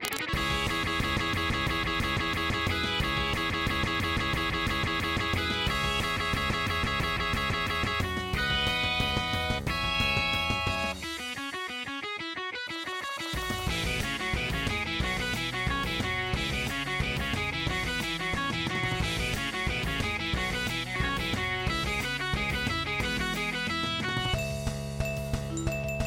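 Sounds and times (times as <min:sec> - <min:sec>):
guitar: 0:00.0 - 0:26.0.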